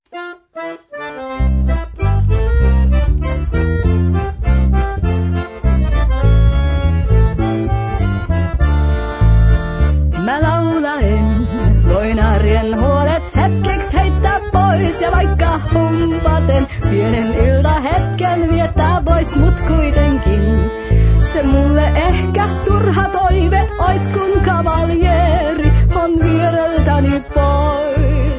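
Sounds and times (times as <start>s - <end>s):
humppa music: 0.1s - 28.3s.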